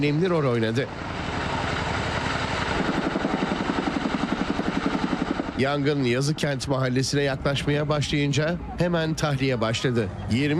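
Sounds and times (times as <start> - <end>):
speech: 0.0 - 1.1, 5.6 - 10.5
CH-47 Chinook helicopter rotor thudding while dropping water on a fire: 0.9 - 5.6.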